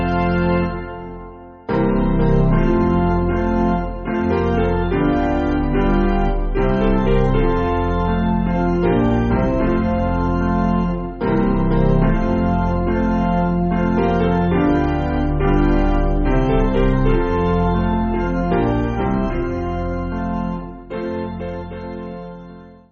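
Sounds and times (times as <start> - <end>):
Zulu melody on piano: 0.0 - 22.8.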